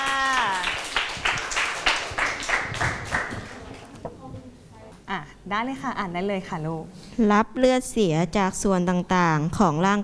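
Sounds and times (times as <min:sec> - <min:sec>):
classroom clapping: 0:00.0 - 0:04.0
speech: 0:05.5 - 0:10.0.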